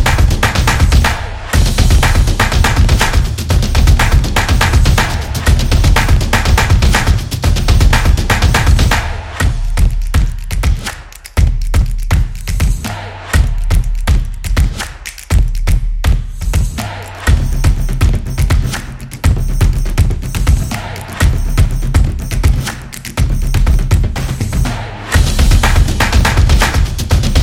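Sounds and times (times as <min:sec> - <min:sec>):
action drum beat: 0:00.0 - 0:27.4.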